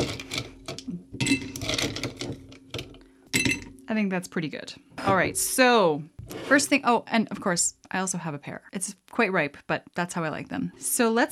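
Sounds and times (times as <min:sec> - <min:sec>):
ice cubes plopped into glass: 0:01.2 - 0:02.8
speech: 0:03.9 - 0:11.3.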